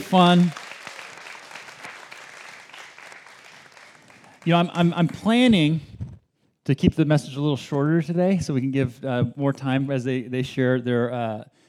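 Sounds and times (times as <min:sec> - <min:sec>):
speech: 0:00.0 - 0:00.6, 0:04.4 - 0:05.9, 0:06.6 - 0:11.6
audience applause: 0:00.0 - 0:05.4.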